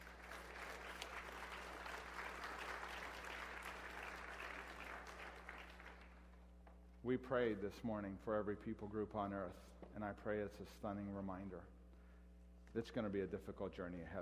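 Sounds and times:
audience applause: 0.0 - 6.2
speech: 7.0 - 11.8, 12.7 - 14.2.

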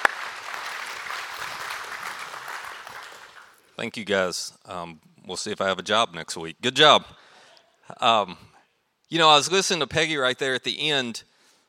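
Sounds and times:
audience applause: 0.0 - 3.7
speech: 3.8 - 7.2, 7.9 - 8.5, 9.1 - 11.3.

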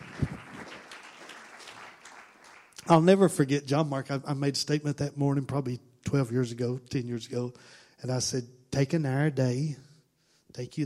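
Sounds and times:
crowd clapping hands: 0.0 - 3.3
speech: 2.9 - 9.9, 10.5 - 10.8.

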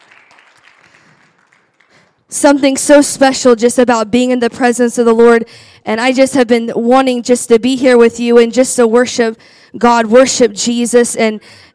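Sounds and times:
audience hand clapping: 0.0 - 2.3
speech: 2.3 - 11.7.

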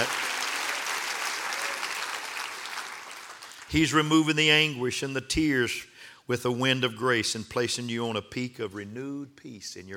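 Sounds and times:
audience clapping hands: 0.0 - 4.1
speech: 3.7 - 9.9.

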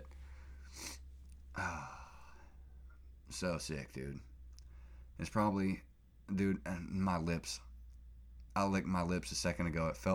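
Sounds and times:
person blowing their nose into a microphone: 0.7 - 1.0
speech: 3.3 - 4.3, 5.2 - 7.7, 8.6 - 10.1.

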